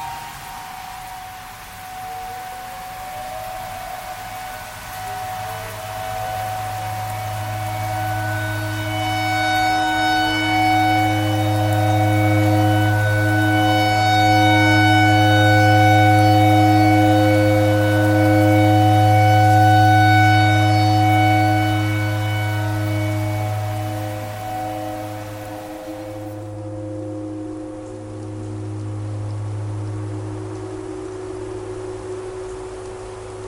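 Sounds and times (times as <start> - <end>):
clarinet playing pentatonic tornado siren tune: 0.0 - 26.6.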